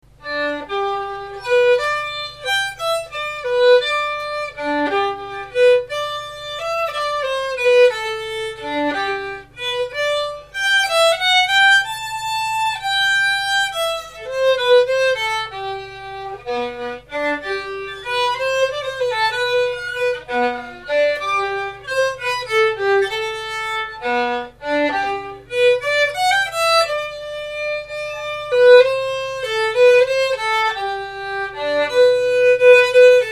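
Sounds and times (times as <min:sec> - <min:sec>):
jigs on violin: 0:00.1 - 0:33.3.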